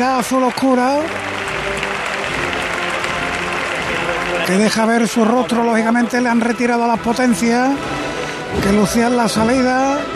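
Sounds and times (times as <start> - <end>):
speech: 0.0 - 1.3, 4.5 - 10.1
thunderous crowd ovation: 0.0 - 6.3.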